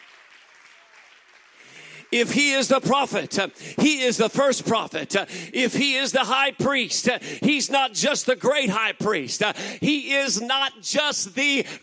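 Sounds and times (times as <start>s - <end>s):
audience clapping hands: 0.0s - 4.7s
speech: 2.1s - 11.8s.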